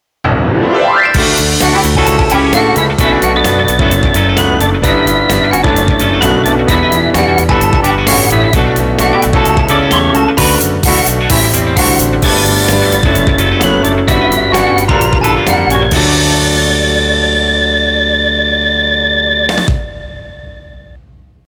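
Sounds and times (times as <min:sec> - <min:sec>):
closing theme style music: 0:00.2 - 0:20.6.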